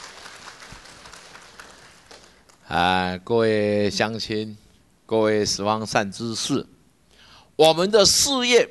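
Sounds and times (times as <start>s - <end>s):
audience applause: 0.0s - 2.6s
speech: 2.7s - 6.8s, 7.6s - 8.7s.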